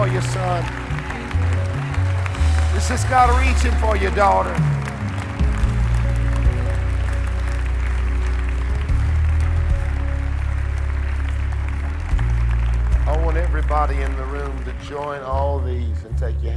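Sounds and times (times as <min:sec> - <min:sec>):
audience clapping: 0:00.0 - 0:15.9
speech: 0:00.1 - 0:01.5, 0:02.8 - 0:04.8, 0:13.3 - 0:16.5.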